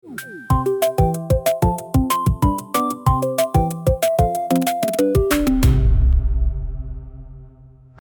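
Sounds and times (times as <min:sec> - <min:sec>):
end song: 0:00.0 - 0:06.1.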